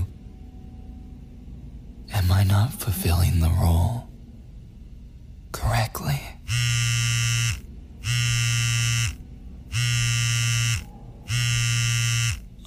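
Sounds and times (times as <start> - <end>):
speech: 2.3 - 4.1
phone vibrating with incoming text: 6.4 - 12.6.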